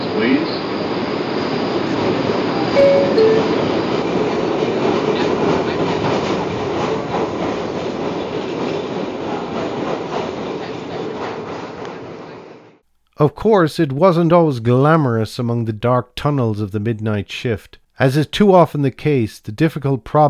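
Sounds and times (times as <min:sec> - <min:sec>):
subway train departing from station: 0:00.0 - 0:12.7
speech: 0:13.2 - 0:20.2.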